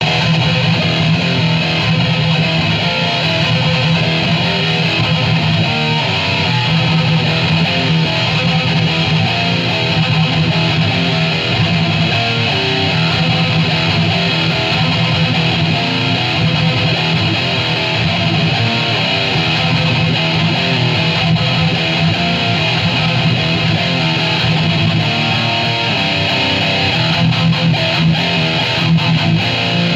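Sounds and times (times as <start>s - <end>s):
metal music: 0.0s - 29.9s.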